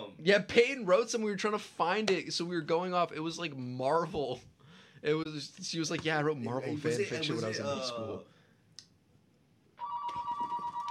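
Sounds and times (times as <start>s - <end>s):
speech: 0.2s - 8.4s
telephone ringing with an incoming call: 9.8s - 10.8s.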